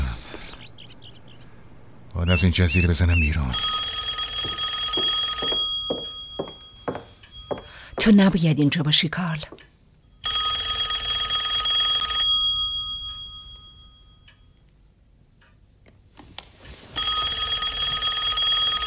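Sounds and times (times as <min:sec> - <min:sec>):
speech: 0:02.2 - 0:03.8, 0:08.0 - 0:09.7
telephone ringing: 0:03.5 - 0:08.2, 0:10.2 - 0:14.3, 0:16.9 - 0:18.8.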